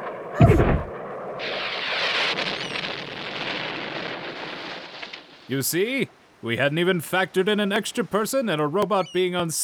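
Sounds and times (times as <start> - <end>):
incoming projectile exploding in a booming blast: 0.0 - 4.6
hissing crackling rush of debris: 0.0 - 8.4
speech: 5.5 - 9.6.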